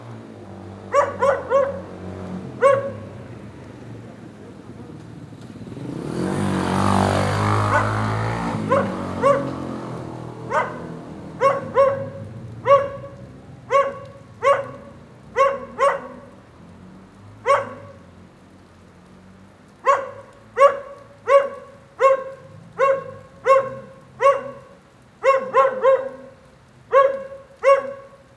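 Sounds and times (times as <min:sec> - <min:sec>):
rain pattering: 0:00.0 - 0:28.3
dog barking: 0:00.9 - 0:03.2, 0:06.3 - 0:16.5, 0:17.4 - 0:18.1, 0:19.8 - 0:28.3.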